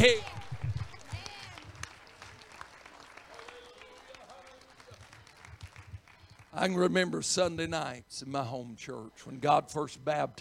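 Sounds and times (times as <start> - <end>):
audience clapping hands loudly: 0.0 - 6.9
speech: 6.6 - 10.3.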